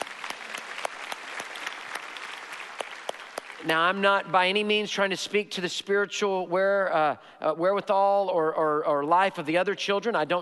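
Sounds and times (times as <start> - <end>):
audience applause: 0.0 - 3.7
speech: 3.6 - 10.4.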